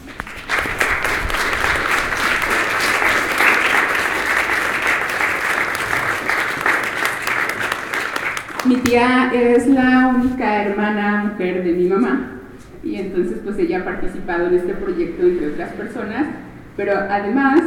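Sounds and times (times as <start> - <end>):
audience applause: 0.0 - 9.1
speech: 8.9 - 17.6.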